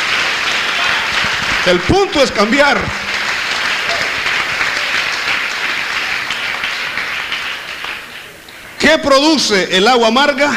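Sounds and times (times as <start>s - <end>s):
audience applauding: 0.0s - 8.9s
speech: 1.6s - 3.0s, 8.8s - 10.5s.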